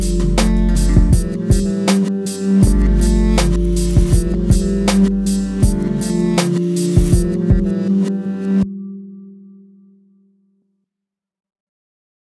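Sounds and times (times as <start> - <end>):
16-bit game music: 0.0 - 1.9, 2.6 - 7.8.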